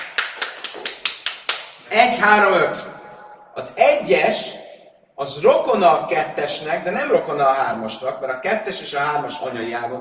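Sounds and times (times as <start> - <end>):
applause, clapping hands: 0.0 - 1.8
speech: 1.9 - 3.0, 3.6 - 4.6, 5.2 - 9.9.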